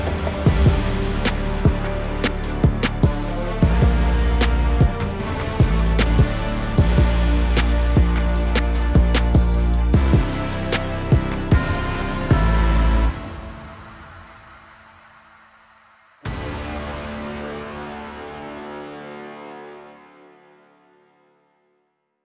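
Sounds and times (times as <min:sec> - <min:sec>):
instrumental music: 0:00.0 - 0:13.4.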